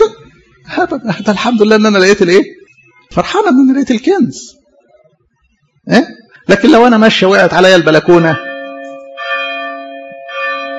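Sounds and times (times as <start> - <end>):
speech: 0.8 - 4.6, 5.9 - 8.5
church bell tolling for a funeral: 8.1 - 10.7.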